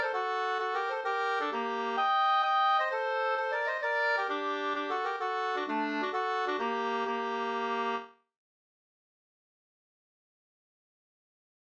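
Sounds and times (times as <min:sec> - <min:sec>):
hambo polska in G minor: 0:00.2 - 0:08.0.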